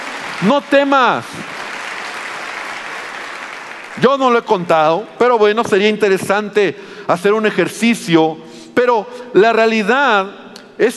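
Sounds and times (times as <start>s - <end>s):
audience applause: 0.0s - 4.7s
speech: 0.4s - 1.5s, 4.0s - 10.9s.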